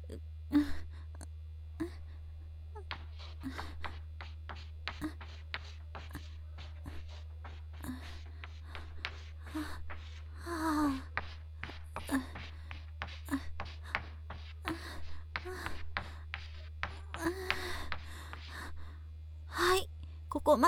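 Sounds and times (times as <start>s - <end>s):
steady low hum: 0.0s - 20.6s
speech: 0.1s - 0.7s, 20.5s - 20.6s
writing on a classroom board: 2.8s - 18.5s.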